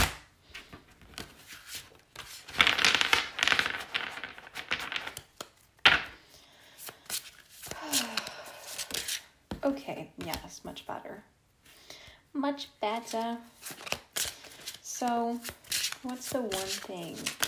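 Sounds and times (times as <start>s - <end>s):
reshuffling a deck of cards: 0.1s - 9.3s, 13.0s - 17.4s
speech: 9.7s - 11.4s, 12.4s - 13.8s, 15.0s - 17.4s.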